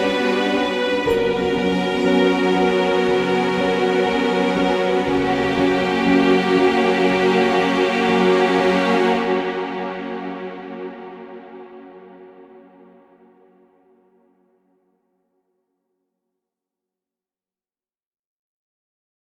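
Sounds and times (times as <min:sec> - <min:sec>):
ending music: 0:00.0 - 0:11.7.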